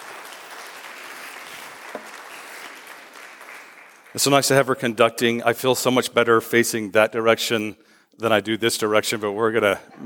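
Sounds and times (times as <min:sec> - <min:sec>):
audience applause: 0:00.0 - 0:04.4
speech: 0:04.1 - 0:10.0.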